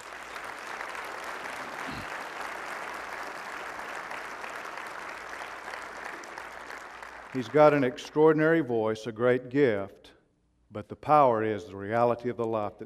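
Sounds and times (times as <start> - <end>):
audience applause: 0.0 - 7.5
speech: 7.3 - 10.0, 10.7 - 12.8.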